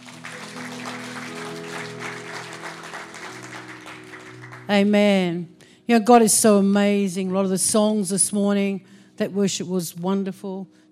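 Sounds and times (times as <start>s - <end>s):
audience clapping: 0.0s - 5.1s
speech: 4.7s - 10.9s.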